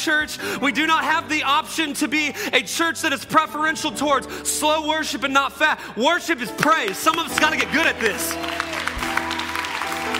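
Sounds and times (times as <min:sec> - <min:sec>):
speech: 0:00.0 - 0:08.8
church audience clapping: 0:06.6 - 0:10.1.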